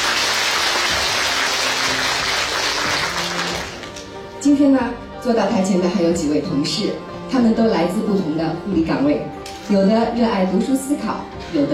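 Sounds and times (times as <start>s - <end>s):
warm audience applause: 0.0s - 4.1s
speech: 4.4s - 11.7s.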